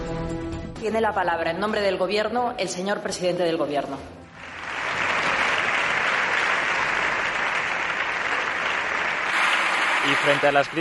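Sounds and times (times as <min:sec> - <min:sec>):
speech: 0:00.8 - 0:04.2, 0:10.1 - 0:10.7
applause from a packed parliamentary bench: 0:04.4 - 0:10.7.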